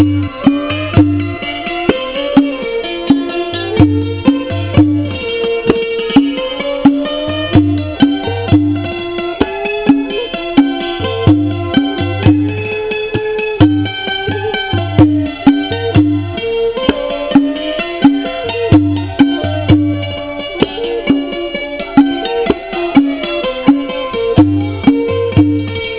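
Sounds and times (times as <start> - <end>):
temple music: 0.0 - 25.9.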